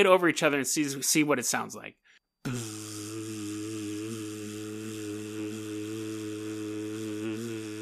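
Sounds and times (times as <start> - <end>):
speech: 0.0 - 2.7
person humming a low-pitched vocal buzz imitating a buzzing sound: 2.5 - 7.8.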